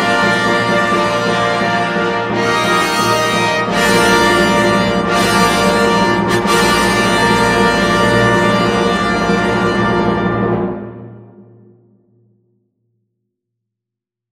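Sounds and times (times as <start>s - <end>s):
fanfare: 0.0s - 11.1s.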